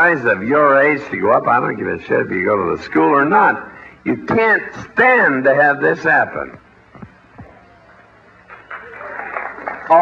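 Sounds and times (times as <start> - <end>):
speech: 0.0 - 6.6
crowd noise: 7.0 - 10.0
audience clapping: 8.5 - 10.0.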